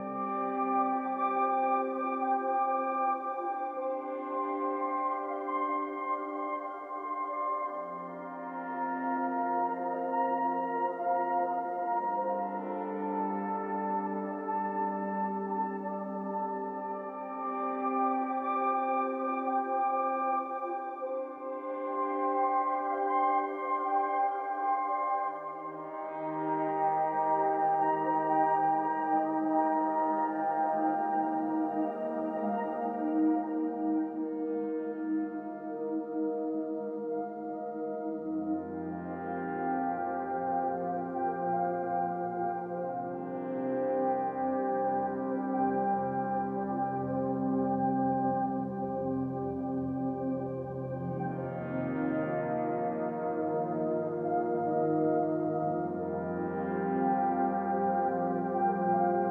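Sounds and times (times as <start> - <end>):
peaceful ambient music: 0.0 - 59.2.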